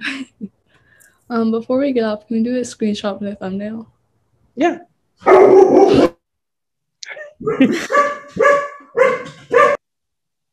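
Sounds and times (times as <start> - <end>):
speech: 1.3 - 4.0, 4.6 - 6.1, 7.4 - 8.6
two dogs barking in the background: 5.2 - 6.1, 7.4 - 9.8.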